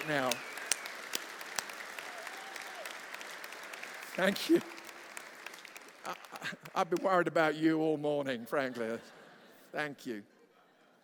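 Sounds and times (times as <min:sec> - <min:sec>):
speech: 0:00.0 - 0:00.5, 0:04.2 - 0:04.8, 0:06.1 - 0:10.3
audience applause: 0:00.0 - 0:07.0.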